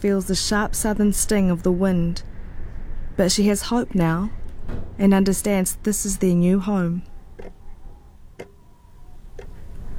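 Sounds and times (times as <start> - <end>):
speech: 0.0 - 2.3, 3.2 - 7.6
low steady hum: 0.0 - 9.9
wall clock ticking: 3.5 - 9.9.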